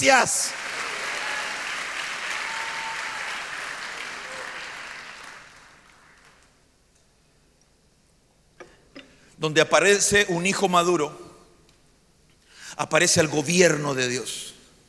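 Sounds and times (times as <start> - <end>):
speech: 0.0 - 0.7, 9.4 - 11.3, 12.8 - 14.5
audience clapping hands: 0.0 - 6.5.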